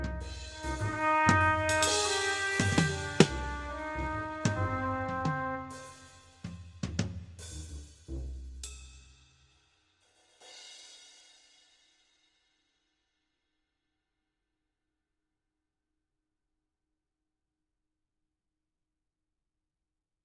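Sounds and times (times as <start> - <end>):
jazzstep trio playing: 0.0 - 9.0.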